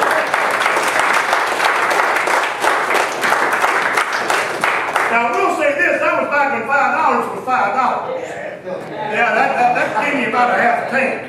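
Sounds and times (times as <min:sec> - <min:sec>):
audience applause: 0:00.0 - 0:05.5
speech: 0:06.1 - 0:11.2
laughter: 0:08.7 - 0:11.1.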